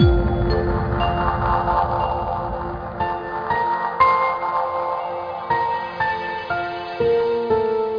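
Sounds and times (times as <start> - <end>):
music intro: 0.0 - 7.7.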